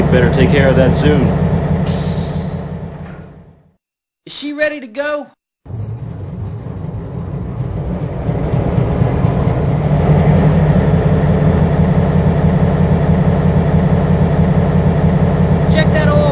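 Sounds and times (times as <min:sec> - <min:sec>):
EMD SW-8 locomotive, electric trains: 0:00.0 - 0:03.8, 0:05.7 - 0:16.2.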